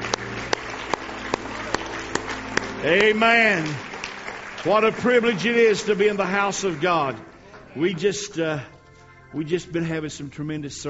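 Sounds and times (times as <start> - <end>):
audience clapping hands in praise: 0.0 - 7.3
speech: 2.8 - 3.9, 4.6 - 8.7, 9.3 - 10.8.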